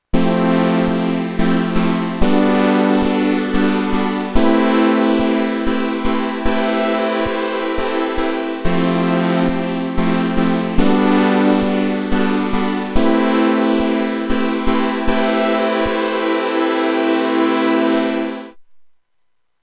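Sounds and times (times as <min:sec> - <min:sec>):
sound generated with X LAB: 0:00.2 - 0:18.5.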